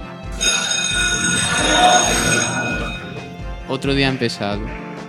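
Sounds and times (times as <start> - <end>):
alarm ringing: 0.4 - 3.5
speech: 3.7 - 4.9.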